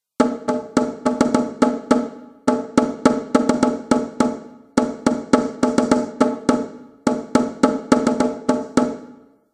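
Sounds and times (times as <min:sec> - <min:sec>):
snare drum: 0:00.2 - 0:09.2.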